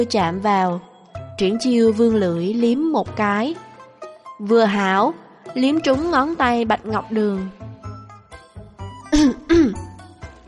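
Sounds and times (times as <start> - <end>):
speech: 0.0 - 3.7, 4.4 - 7.6
dry cough: 9.1 - 9.9.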